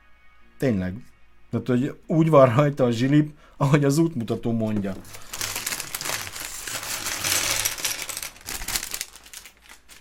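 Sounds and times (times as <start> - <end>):
speech: 0.6 - 5.3
plastic bags crinkling on a sofa under a cat: 4.7 - 9.9.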